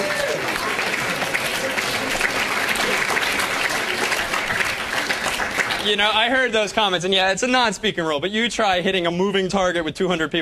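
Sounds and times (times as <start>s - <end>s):
audience applause: 0.0s - 7.0s
speech: 5.8s - 10.4s.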